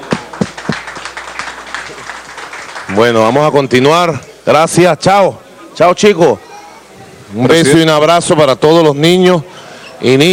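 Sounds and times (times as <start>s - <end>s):
light applause for a child during a radio program visit: 0.0s - 3.4s
speech: 2.9s - 6.5s, 7.3s - 10.3s.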